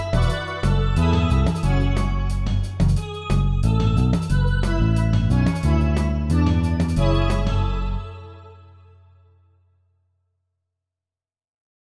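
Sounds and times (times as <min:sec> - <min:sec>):
summer pop hit song: 0:00.0 - 0:08.3.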